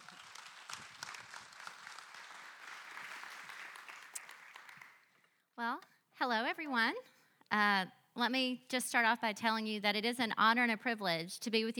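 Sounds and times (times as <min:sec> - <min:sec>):
warm round of applause: 0:00.0 - 0:05.4
speech: 0:05.6 - 0:11.7.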